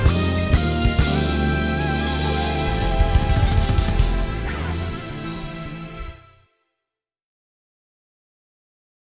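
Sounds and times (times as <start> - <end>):
instrumental music: 0.0 - 6.6.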